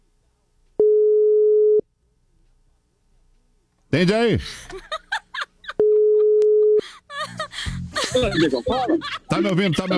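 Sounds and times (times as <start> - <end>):
telephone call tone while dialing a friend: 0.8 - 1.8
speech: 4.0 - 4.9, 8.1 - 9.9
laughter: 4.4 - 9.9.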